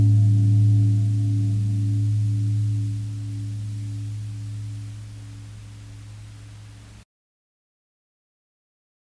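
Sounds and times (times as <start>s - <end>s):
solo chord melody: 0.0s - 7.0s.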